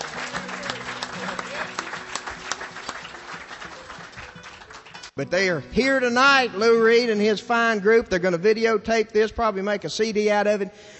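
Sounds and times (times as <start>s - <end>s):
audience applause: 0.0s - 5.2s
speech: 5.2s - 10.9s.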